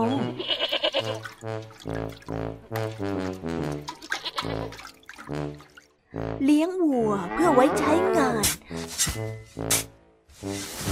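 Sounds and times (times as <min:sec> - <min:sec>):
speech: 0:00.0 - 0:10.8
goats and sheep bleating: 0:00.2 - 0:01.4, 0:03.9 - 0:04.8.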